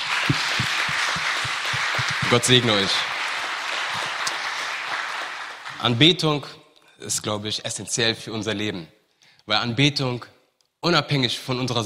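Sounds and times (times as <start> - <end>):
audience applause: 0.0 - 6.1
speech: 2.3 - 3.1, 5.8 - 11.8.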